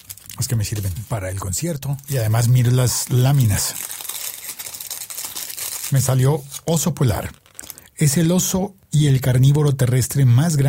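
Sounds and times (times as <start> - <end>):
chocolate bar wrapper being unwrapped: 0.0 - 8.3
speech: 0.4 - 3.9, 5.9 - 7.4, 8.0 - 10.6.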